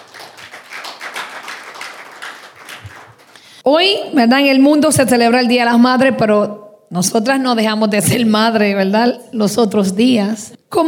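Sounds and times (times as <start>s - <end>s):
crowd applauding: 0.0s - 3.5s
speech: 3.6s - 10.8s.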